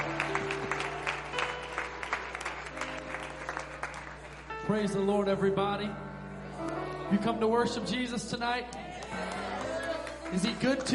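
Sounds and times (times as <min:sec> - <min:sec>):
audience clapping hands: 0:00.0 - 0:04.6, 0:08.7 - 0:10.9
speech: 0:04.7 - 0:06.1, 0:07.1 - 0:09.5, 0:10.3 - 0:10.9.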